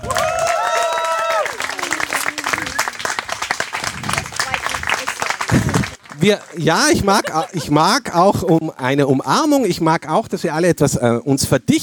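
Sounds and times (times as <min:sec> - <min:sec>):
applause: 0:00.0 - 0:07.7
laughter: 0:05.0 - 0:08.8
speech: 0:06.2 - 0:11.8.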